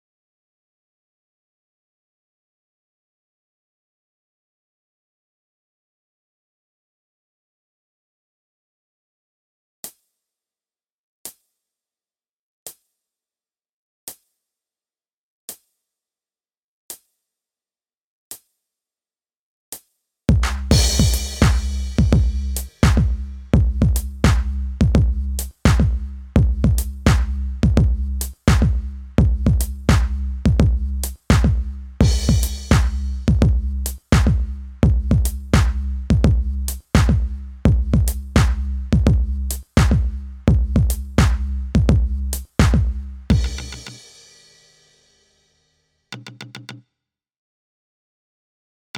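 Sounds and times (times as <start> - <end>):
drums and percussion: 20.3 - 45.2.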